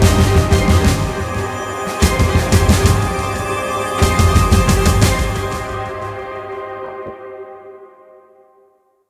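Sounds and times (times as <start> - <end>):
countdown music: 0.0 - 7.2.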